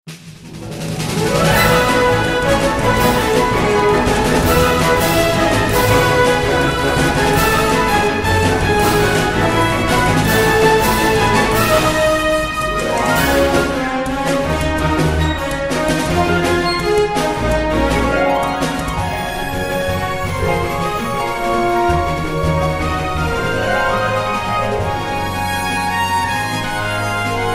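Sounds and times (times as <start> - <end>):
orchestra: 0.1 - 27.5.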